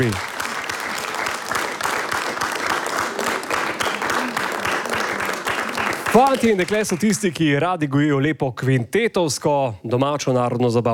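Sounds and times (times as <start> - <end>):
speech: 0.0 - 0.3, 6.2 - 10.9
audience applause: 0.0 - 7.4.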